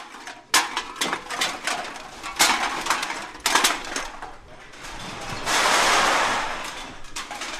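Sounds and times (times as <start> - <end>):
aluminum cans clunking: 0.0 - 7.5
glass bottles clinking: 0.0 - 7.5.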